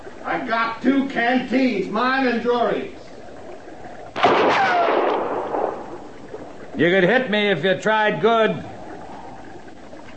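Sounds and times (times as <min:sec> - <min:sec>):
speech: 0:00.3 - 0:03.0, 0:06.8 - 0:08.7
rifle shot with long rumbling echo: 0:04.2 - 0:05.7.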